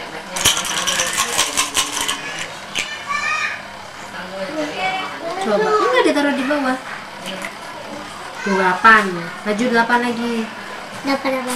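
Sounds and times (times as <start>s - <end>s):
children's voices and chatter: 0.0s - 11.5s
dice shaken for a board game: 0.4s - 3.0s
speech: 5.5s - 6.9s, 8.4s - 11.5s.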